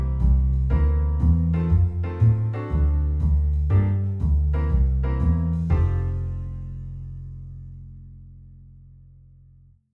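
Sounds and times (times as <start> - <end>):
blues drum accompaniment: 0.0 - 6.3.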